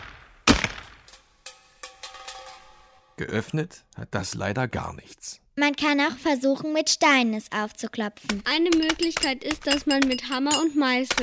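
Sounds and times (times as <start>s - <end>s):
rifle shot at a tin can: 0.0s - 1.1s
speech: 3.2s - 11.2s
tin can clinking and rattling: 8.4s - 11.2s.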